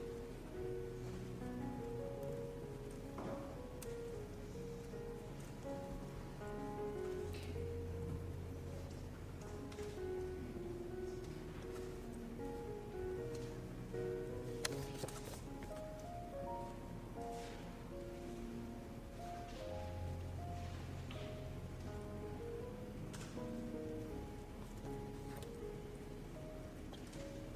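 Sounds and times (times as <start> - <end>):
steady room tone hiss in the Yale library: 0.0 - 27.5.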